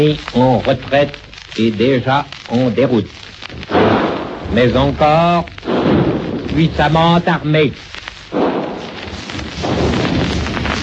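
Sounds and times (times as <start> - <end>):
speech: 0.0 - 3.8, 4.5 - 8.0
enemy cannon fire: 3.6 - 7.4, 8.3 - 10.8
French carbine gunfire: 3.7 - 4.6, 5.6 - 6.5, 8.3 - 9.0.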